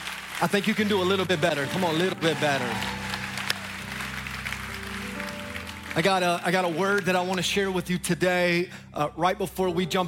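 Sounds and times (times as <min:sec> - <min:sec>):
audience applauding: 0:00.0 - 0:07.7
speech: 0:00.4 - 0:03.0, 0:06.0 - 0:10.0.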